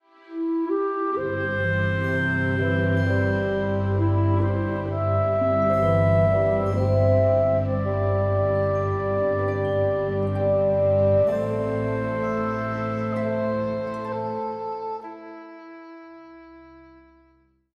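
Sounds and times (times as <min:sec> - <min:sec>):
romantic kiss jingle: 0:01.3 - 0:15.8.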